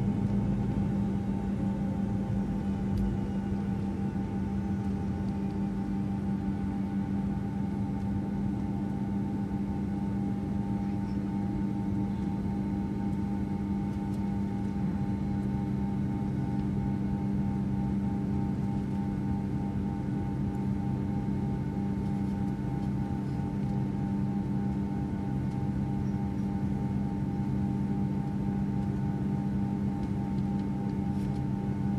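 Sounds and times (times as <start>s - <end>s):
aircraft cabin ambience while rolling on the ground: 0.0s - 31.9s.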